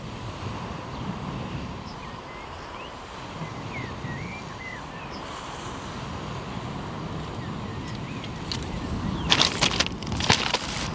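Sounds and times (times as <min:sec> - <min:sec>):
waves along the Omø coastline: 0:00.0 - 0:10.9
wind along the Omø coastline: 0:00.0 - 0:10.9
loud crackling bursts: 0:09.2 - 0:10.9.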